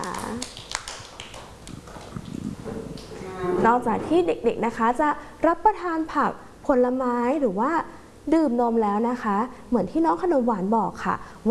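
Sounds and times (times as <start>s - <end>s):
hand clapping: 0.0s - 3.2s
speech: 0.3s - 0.6s, 3.7s - 11.4s.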